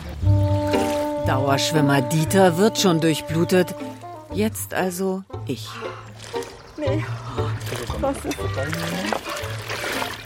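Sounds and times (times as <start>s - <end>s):
water poured over the upper body: 0.0s - 2.1s, 5.8s - 10.2s
speech: 1.3s - 9.4s.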